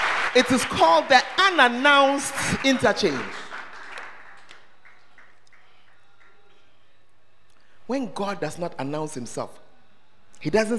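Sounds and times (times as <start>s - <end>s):
crowd clapping: 0.0s - 6.7s
speech: 0.4s - 3.4s, 7.9s - 9.6s, 10.4s - 10.7s.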